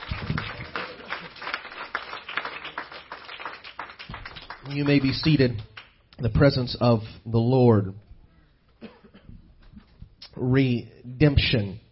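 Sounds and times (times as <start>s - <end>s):
crowd clapping: 0.0s - 6.2s
speech: 4.7s - 8.0s, 10.4s - 11.8s.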